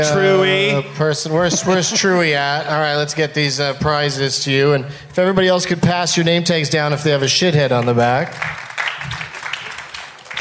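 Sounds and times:
speech: 0:00.0 - 0:09.2
tepid audience applause: 0:07.7 - 0:10.4.

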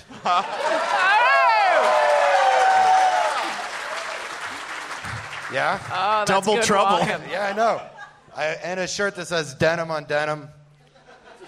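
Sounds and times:
laughter: 0:00.0 - 0:01.2, 0:06.6 - 0:08.3, 0:10.8 - 0:11.4
speech: 0:00.2 - 0:01.2, 0:05.5 - 0:10.6
audience applause and cheering: 0:00.3 - 0:07.0.

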